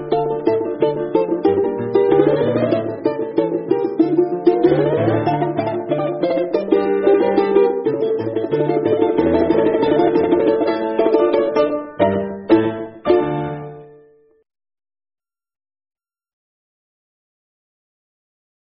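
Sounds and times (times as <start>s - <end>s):
balalaika: 0.0s - 14.1s.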